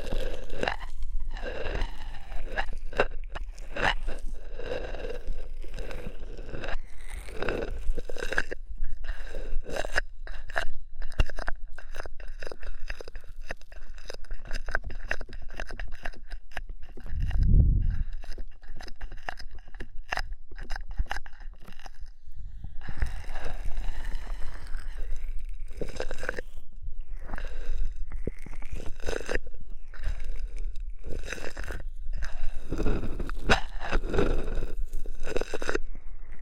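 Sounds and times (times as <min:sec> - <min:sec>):
ear massage with oil and foam crackling and squishing: 0:00.0 - 0:36.4.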